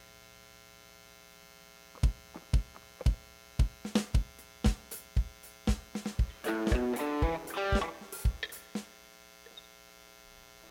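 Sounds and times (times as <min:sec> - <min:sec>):
buzzing noise: 0:00.0 - 0:10.6
audio feedback: 0:02.0 - 0:10.2.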